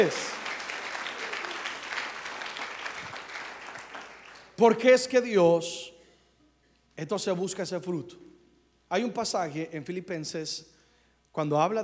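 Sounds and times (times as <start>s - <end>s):
speech: 0.0s - 0.4s, 4.6s - 5.9s, 7.0s - 8.3s, 8.9s - 10.7s, 11.4s - 11.8s
audience applauding: 0.0s - 4.6s.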